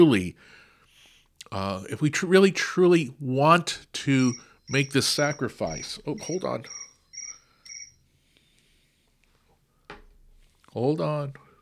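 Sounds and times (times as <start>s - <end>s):
speech: 0.0s - 0.6s, 1.5s - 6.8s, 10.8s - 11.4s
phone text message alert: 4.1s - 8.0s.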